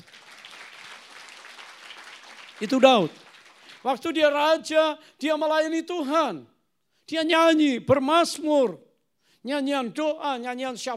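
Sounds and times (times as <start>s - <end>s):
audience clapping: 0.0s - 4.3s
speech: 2.6s - 3.2s, 3.8s - 6.5s, 7.1s - 8.8s, 9.4s - 10.9s.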